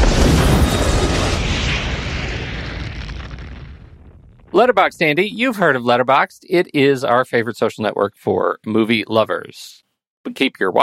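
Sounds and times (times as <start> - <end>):
loud explosion: 0.0 - 5.5
speech: 4.6 - 10.8.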